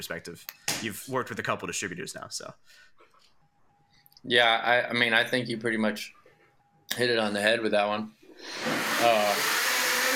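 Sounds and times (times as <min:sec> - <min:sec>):
speech: 0:00.0 - 0:03.0, 0:04.2 - 0:06.2, 0:06.9 - 0:09.6
blender running: 0:08.4 - 0:10.1.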